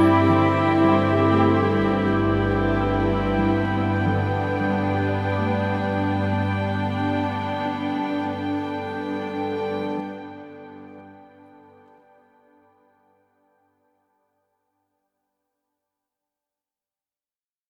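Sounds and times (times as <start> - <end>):
ambient meditation music: 0.0 - 13.9.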